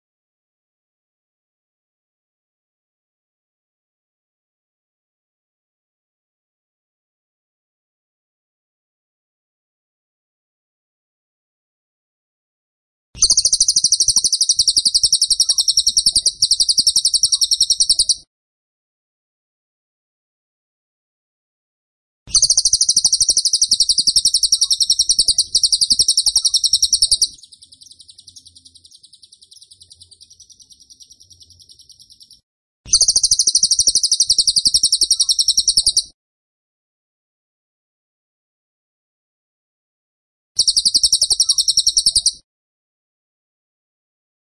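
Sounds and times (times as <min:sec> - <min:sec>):
tembakan bird trilling: 0:13.2 - 0:18.2, 0:22.3 - 0:36.1, 0:40.6 - 0:42.4.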